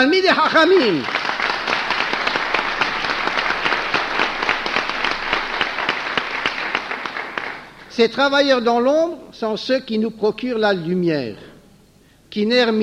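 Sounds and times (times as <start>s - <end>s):
speech: 0.0s - 1.2s, 8.0s - 11.5s, 12.3s - 12.8s
audience applause: 0.4s - 7.9s.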